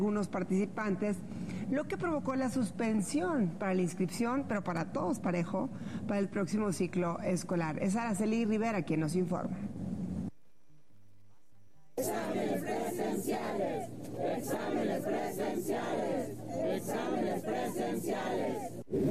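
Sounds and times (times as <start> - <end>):
speech: 0.0 - 9.7
protesters chanting while marching: 12.0 - 18.8.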